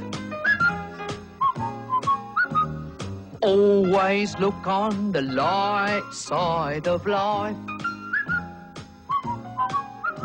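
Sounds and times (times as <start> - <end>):
whistled melody in a song: 0.0 - 3.1, 7.6 - 10.2
rhythmic instrumental backing: 0.0 - 10.2
speech: 3.4 - 7.7.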